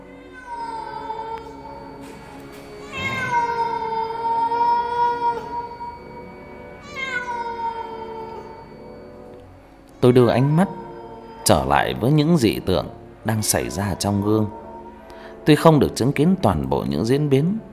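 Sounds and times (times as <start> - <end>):
cat meowing eerily: 0.0 - 9.0, 10.0 - 12.0
speech: 10.1 - 10.8, 11.5 - 14.6, 15.4 - 17.7.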